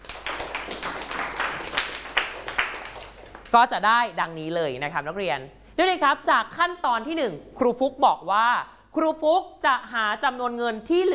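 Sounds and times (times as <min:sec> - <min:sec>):
classroom clapping for a group: 0:00.0 - 0:03.6
speech: 0:03.5 - 0:11.1.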